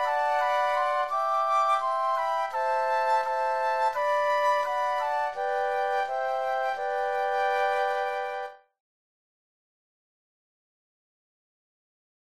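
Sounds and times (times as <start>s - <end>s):
flute trio playing: 0.0s - 8.6s.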